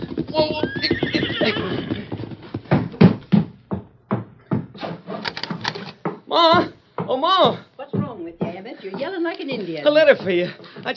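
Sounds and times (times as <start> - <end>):
horse hoofbeats: 0.0 - 10.9
horse neighing: 0.3 - 2.4
speech: 0.4 - 1.7, 9.6 - 10.9.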